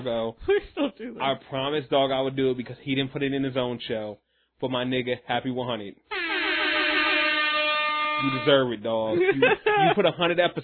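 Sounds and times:
speech: 0.0s - 6.3s, 8.2s - 10.6s
air horn sound effect: 6.1s - 8.8s
laughter: 9.1s - 10.6s.

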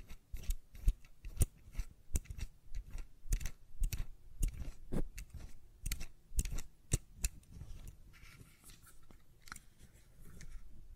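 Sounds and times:
tapping and clicking on a fidget cube: 0.0s - 8.0s.

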